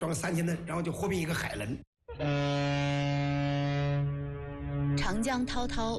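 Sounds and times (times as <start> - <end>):
speech: 0.0 - 2.8, 5.1 - 5.9
cargo ship horn on the Yangtze: 2.1 - 5.3.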